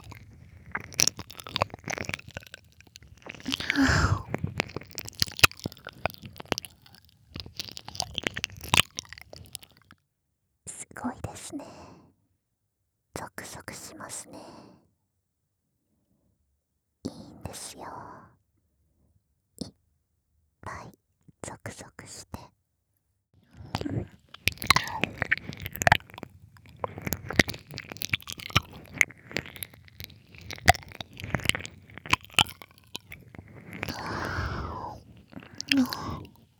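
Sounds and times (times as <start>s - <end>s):
ear licking relaxation sounds: 0.0s - 9.9s, 23.8s - 36.5s.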